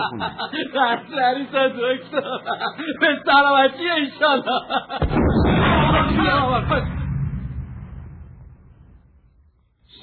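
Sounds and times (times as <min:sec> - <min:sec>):
laughter: 0:00.0 - 0:05.2
speech: 0:00.0 - 0:07.0
distant cannon fire: 0:05.0 - 0:09.6.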